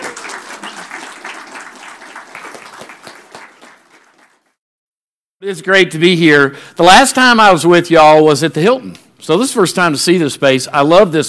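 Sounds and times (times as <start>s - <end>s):
audience applause: 0.0s - 4.6s
speech: 5.4s - 11.2s.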